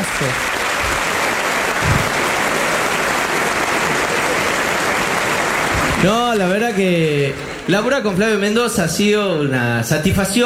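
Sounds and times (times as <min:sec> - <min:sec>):
audience applause: 0:00.0 - 0:10.4
laughter: 0:00.0 - 0:10.4
speech: 0:00.2 - 0:00.5, 0:06.0 - 0:10.4.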